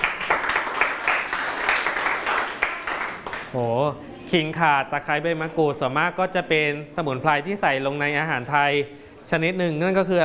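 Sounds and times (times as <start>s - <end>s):
group of students applauding: 0.0s - 3.6s
speech: 3.5s - 10.2s.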